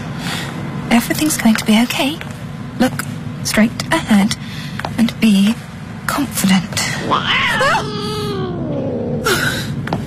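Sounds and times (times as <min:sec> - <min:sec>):
speech: 0:01.0 - 0:08.2
cat caterwauling: 0:07.0 - 0:09.7.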